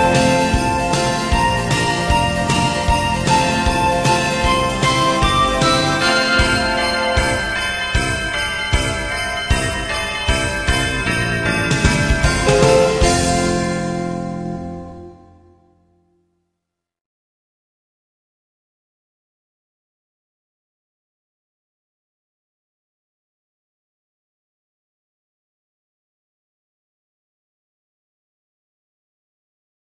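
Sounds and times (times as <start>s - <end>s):
instrumental christmas song: 0.0s - 16.1s.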